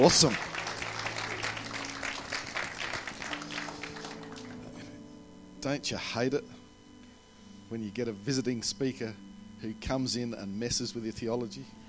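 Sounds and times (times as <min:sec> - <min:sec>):
speech: 0:00.0 - 0:00.5, 0:05.6 - 0:06.6, 0:07.7 - 0:11.8
audience clapping: 0:00.0 - 0:04.9.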